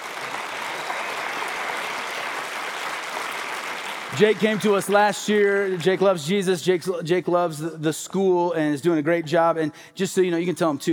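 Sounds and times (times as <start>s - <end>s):
audience clapping to welcome a school's head onto the stage: 0.0s - 6.6s
speech: 4.1s - 10.9s.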